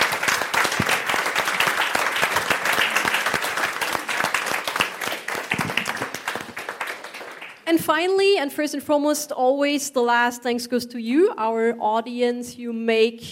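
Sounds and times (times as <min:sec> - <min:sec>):
crowd applause: 0:00.0 - 0:07.7
speech: 0:07.8 - 0:13.3.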